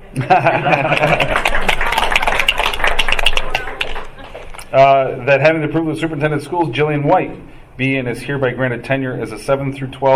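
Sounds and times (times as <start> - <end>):
laughter: 0.0 - 2.0, 3.9 - 4.6
speech: 0.2 - 1.8, 4.7 - 10.1
applause: 0.6 - 4.5.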